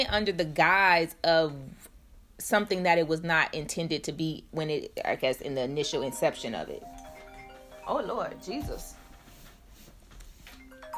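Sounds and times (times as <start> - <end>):
speech: 0.0 - 7.0, 7.9 - 9.0
low hum: 0.0 - 10.9
phone call ringtone: 5.8 - 9.8, 10.4 - 10.9.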